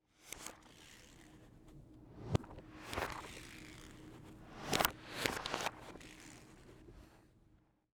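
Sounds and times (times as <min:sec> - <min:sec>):
manipulated book opening: 0:02.3 - 0:06.8.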